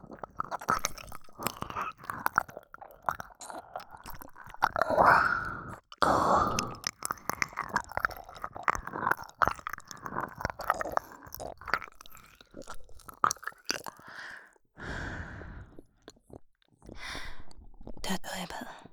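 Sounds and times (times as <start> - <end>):
ear licking: 0.1 - 14.2
nurse speaking in a low cool voice: 18.0 - 18.9.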